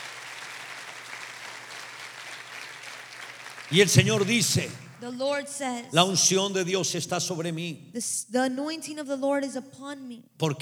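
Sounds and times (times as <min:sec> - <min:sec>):
large crowd applause: 0:00.0 - 0:05.0
speech: 0:03.7 - 0:10.6.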